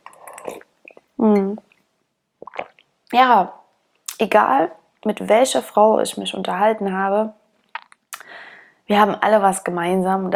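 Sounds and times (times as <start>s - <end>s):
person drinking a beverage, slurping and swallowing: 0.0s - 1.1s, 2.4s - 2.8s
speech: 0.5s - 1.7s, 3.1s - 3.6s, 4.2s - 7.4s, 8.9s - 10.3s.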